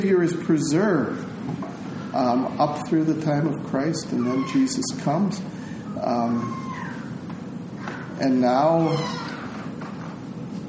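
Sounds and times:
speech: 0:00.0 - 0:06.8, 0:08.2 - 0:09.3
hum: 0:00.0 - 0:10.6
baby squeaking: 0:04.2 - 0:04.8, 0:06.3 - 0:07.1, 0:08.8 - 0:09.4.

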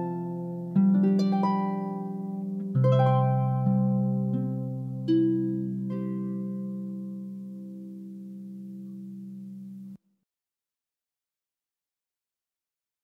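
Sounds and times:
harp music: 0:00.0 - 0:10.0.

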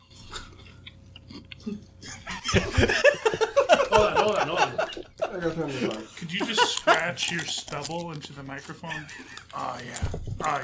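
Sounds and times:
laughter: 0:02.0 - 0:07.2, 0:08.8 - 0:09.6
speech: 0:02.5 - 0:03.2, 0:05.4 - 0:10.6
crunchy chewing of a chip close to a microphone: 0:05.9 - 0:10.6.

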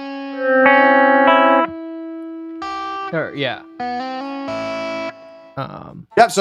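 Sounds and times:
ringing guitar note played on third string: 0:00.2 - 0:01.8
speech: 0:03.1 - 0:04.0, 0:05.6 - 0:06.3.

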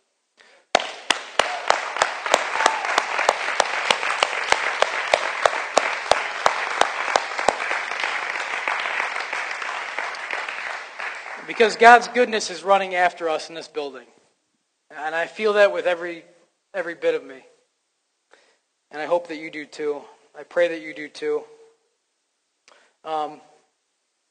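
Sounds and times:
audience clapping: 0:00.7 - 0:12.3
speech: 0:11.6 - 0:14.2, 0:15.0 - 0:17.5, 0:18.9 - 0:21.6, 0:23.0 - 0:23.5.

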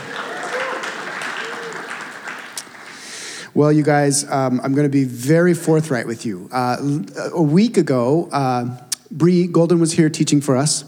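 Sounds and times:
audience round of applause: 0:00.0 - 0:03.4
speech: 0:03.6 - 0:10.8.

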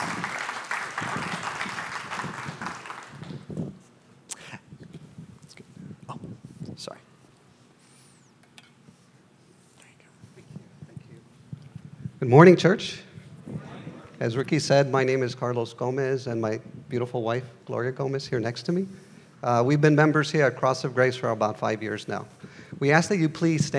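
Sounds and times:
audience applause: 0:00.0 - 0:03.6
speech: 0:12.3 - 0:13.0, 0:14.2 - 0:23.7.

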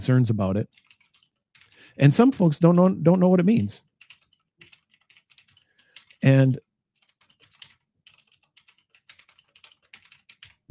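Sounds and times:
speech: 0:00.0 - 0:00.9, 0:01.9 - 0:03.9, 0:06.2 - 0:06.6
typing on a clacky computer keyboard: 0:00.7 - 0:01.9, 0:03.9 - 0:06.3, 0:07.0 - 0:10.6.

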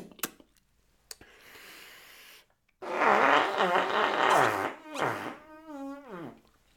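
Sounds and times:
whoopee cushion fart noise: 0:02.8 - 0:06.4.

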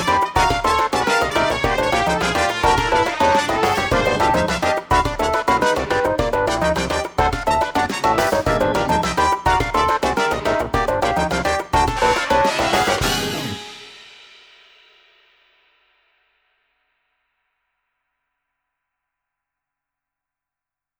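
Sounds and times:
Cuban son funk music: 0:00.0 - 0:14.0.

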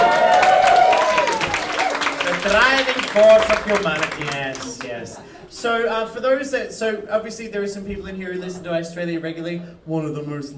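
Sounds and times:
sustained vocal whoop or cheer: 0:00.0 - 0:02.0
crowd applauding loudly: 0:00.0 - 0:05.1
speech: 0:02.7 - 0:10.5.

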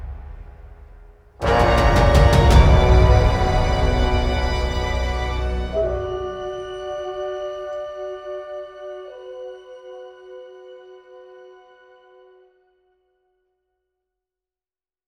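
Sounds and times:
chamber orchestra playing: 0:01.4 - 0:09.6.

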